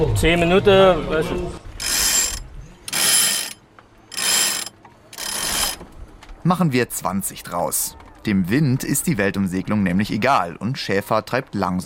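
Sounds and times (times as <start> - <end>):
speech: 0.0 - 1.6, 6.4 - 11.8
winch or pulley hoisting sails on a sailboat: 1.8 - 5.8.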